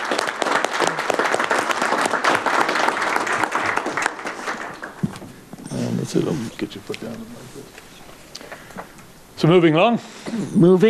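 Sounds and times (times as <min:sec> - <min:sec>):
crowd applause: 0:00.0 - 0:05.3
speech: 0:06.1 - 0:07.9, 0:09.4 - 0:10.8.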